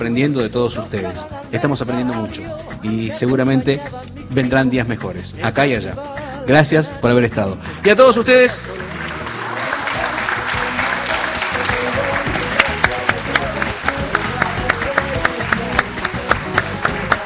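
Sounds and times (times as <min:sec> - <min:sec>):
speech: 0:00.0 - 0:09.0
audience applause: 0:08.6 - 0:17.2.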